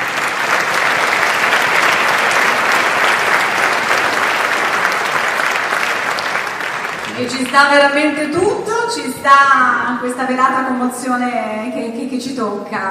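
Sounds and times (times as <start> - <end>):
warm audience applause: 0.0 - 8.3
speech: 7.2 - 12.8.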